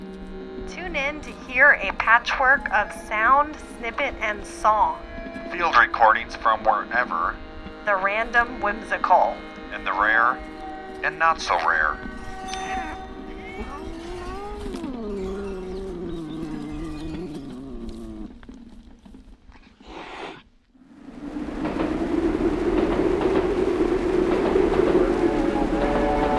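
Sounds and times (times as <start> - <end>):
wavering harmonic horn-like tones: 0.0 - 18.4, 20.9 - 26.3
speech: 0.7 - 12.9
train passing: 0.7 - 14.6, 20.8 - 26.3.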